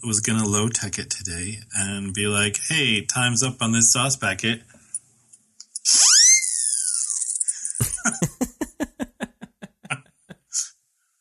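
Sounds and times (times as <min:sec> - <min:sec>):
speech: 0:00.0 - 0:04.8, 0:05.9 - 0:06.1
shrill whistle: 0:05.8 - 0:07.8
laughter: 0:07.8 - 0:10.6.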